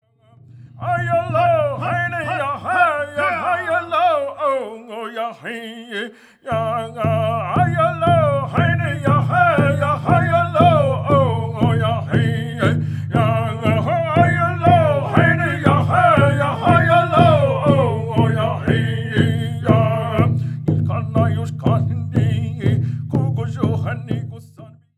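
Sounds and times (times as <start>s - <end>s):
early morning prayer: 0.0s - 24.8s.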